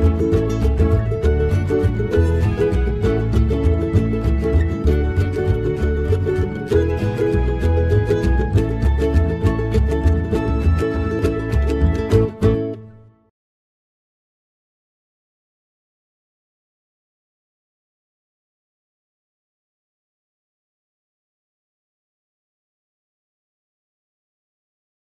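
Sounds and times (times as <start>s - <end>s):
backing music: 0.0s - 13.1s.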